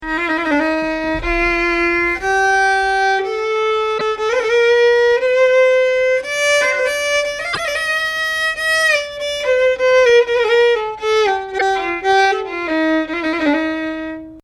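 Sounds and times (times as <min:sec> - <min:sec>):
Arabic music in ascending maqam Sikah: 0:00.0 - 0:14.4.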